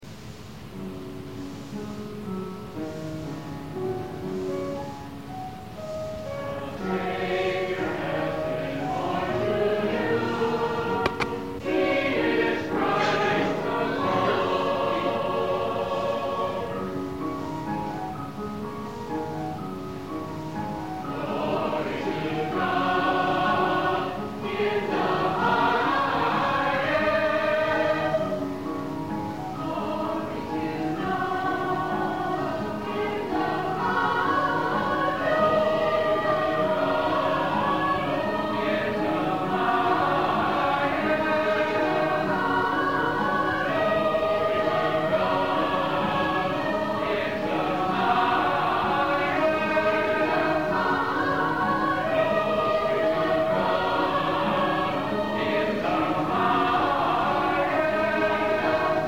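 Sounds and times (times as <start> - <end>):
choir singing: 2.3 - 59.0.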